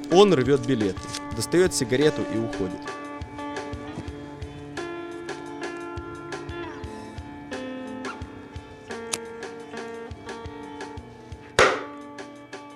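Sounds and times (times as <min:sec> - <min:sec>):
speech: 0:00.1 - 0:02.9
hammer blows from someone repairing a chair in a kitchen: 0:11.6 - 0:11.9.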